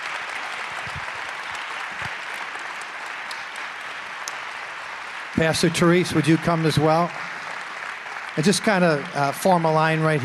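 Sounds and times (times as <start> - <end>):
audience round of applause: 0.0 - 10.2
speech: 5.4 - 7.3, 8.4 - 10.2.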